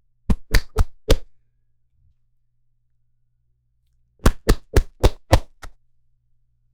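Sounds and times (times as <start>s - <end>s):
sharp slap across the face in an argument: 0.3s - 1.3s, 4.2s - 5.8s.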